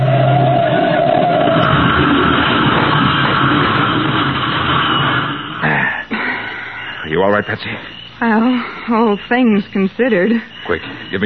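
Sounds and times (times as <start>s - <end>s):
car engine roar: 0.0s - 5.6s
car crashing on a curve, grinding and clattering: 1.3s - 5.6s
speech: 7.4s - 11.2s.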